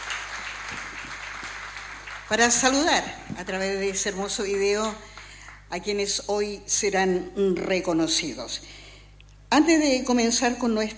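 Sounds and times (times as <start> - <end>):
audience applause: 0.0 - 2.9
speech: 2.3 - 5.1, 5.7 - 8.8, 9.5 - 10.9.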